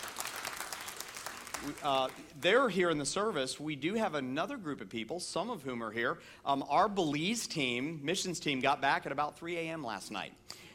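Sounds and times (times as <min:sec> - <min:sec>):
crowd applauding: 0:00.0 - 0:02.5
speech: 0:01.6 - 0:10.6.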